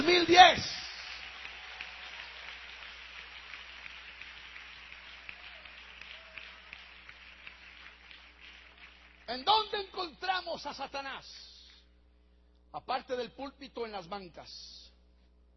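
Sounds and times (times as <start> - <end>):
audience applauding: 0.0 - 9.3
speech: 9.3 - 11.5, 12.7 - 14.8.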